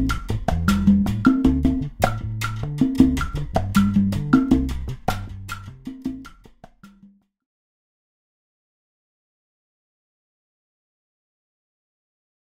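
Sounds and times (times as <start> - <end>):
guaracha music: 0.0 - 7.1.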